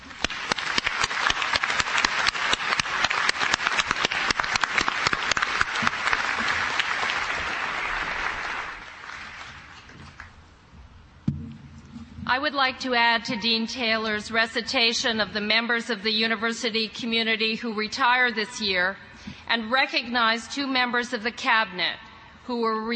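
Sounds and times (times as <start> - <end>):
commencement audience applause: 0.0 - 10.2
speech: 12.4 - 22.9.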